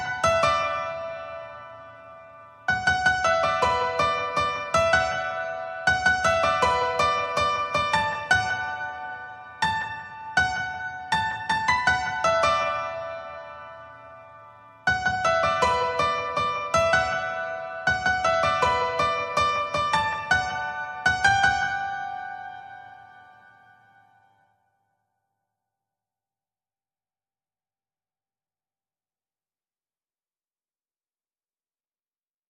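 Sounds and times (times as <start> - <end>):
solo piano: 0.0 - 24.6.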